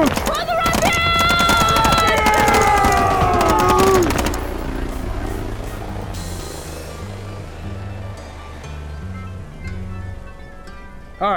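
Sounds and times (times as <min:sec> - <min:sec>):
machine gun fire: 0:00.0 - 0:06.7
low rumbling hum: 0:00.0 - 0:11.3.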